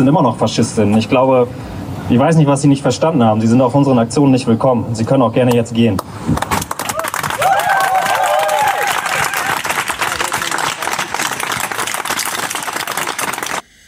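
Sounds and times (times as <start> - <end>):
speech: 0.0 - 6.5
crowd clapping: 6.3 - 13.7.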